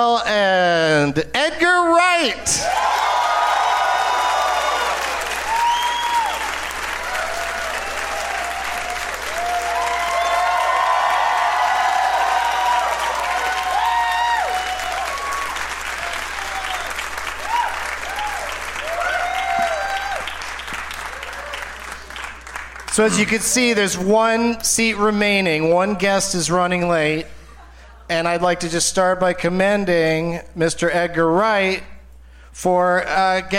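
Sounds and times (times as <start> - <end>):
speech: 0.0 - 2.9, 23.0 - 27.4, 28.1 - 31.9, 32.6 - 33.5
audience applause greeting guests on a live comedy talk show: 2.7 - 23.7.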